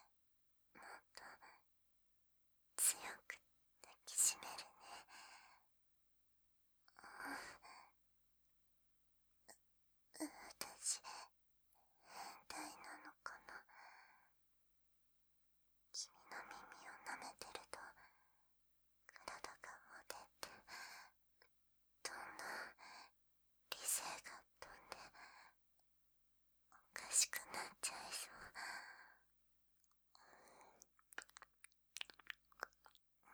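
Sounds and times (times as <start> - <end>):
sweet ASMR whispering: 0.8 - 1.6, 2.8 - 5.5, 6.9 - 7.9, 10.2 - 11.3, 12.1 - 13.7, 16.0 - 18.2, 19.1 - 21.1, 22.0 - 23.1, 23.7 - 25.6, 26.8 - 29.2, 30.2 - 31.5, 32.0 - 33.3
ASMR ear licking sounds in the right ear: 30.8 - 33.0.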